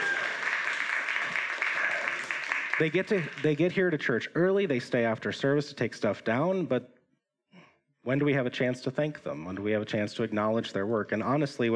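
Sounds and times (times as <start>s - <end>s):
audience applause: 0.0s - 3.9s
speech: 2.8s - 7.0s, 8.0s - 11.7s.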